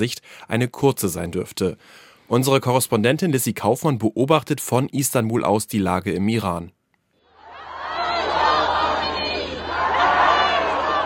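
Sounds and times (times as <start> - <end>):
speech: 0.0 - 6.8
crowds cheering in a square in Tehran, Iran: 7.2 - 11.0.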